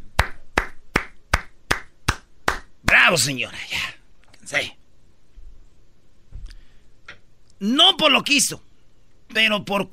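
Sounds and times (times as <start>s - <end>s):
people clapping: 0.2s - 3.0s
speech: 3.1s - 4.8s, 7.6s - 8.7s, 9.3s - 9.9s.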